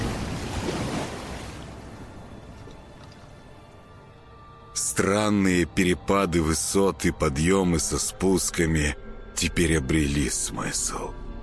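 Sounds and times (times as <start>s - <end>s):
churning waves and splashing water as something colossal moves through water: 0.0s - 3.8s
speech: 5.0s - 11.2s.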